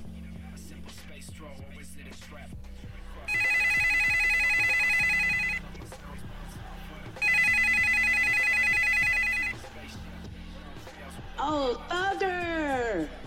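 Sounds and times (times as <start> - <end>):
speech: 1.4 - 3.6, 11.4 - 12.3
telephone ringing with incoming call: 3.3 - 5.7, 7.2 - 9.7.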